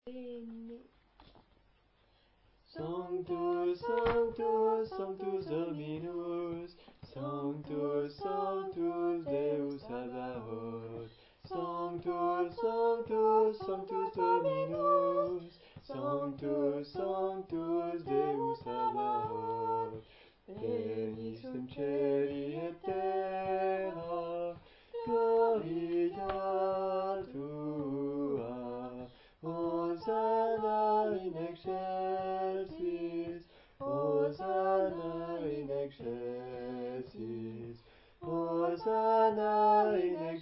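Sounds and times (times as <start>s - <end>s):
soprano singing: 2.7s - 40.4s.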